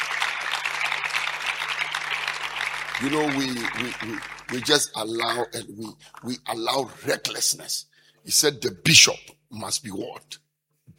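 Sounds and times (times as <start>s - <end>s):
church congregation clapping during a sermon: 0.0s - 6.8s
speech: 3.0s - 10.4s.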